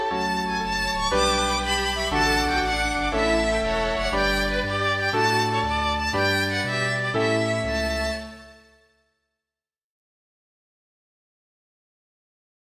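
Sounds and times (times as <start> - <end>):
flute: 0.0 - 8.7.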